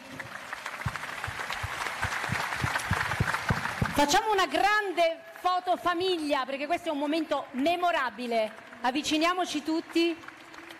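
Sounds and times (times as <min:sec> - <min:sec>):
audience applause: 0:00.0 - 0:05.4, 0:08.4 - 0:10.7
speech: 0:04.0 - 0:10.3.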